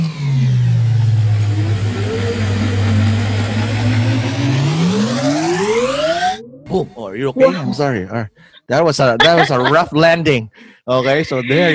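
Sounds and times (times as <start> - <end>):
time machine sound effect engine droning and revving: 0.0 - 7.7
speech: 7.2 - 11.7
laughter: 7.3 - 10.2, 10.9 - 11.7.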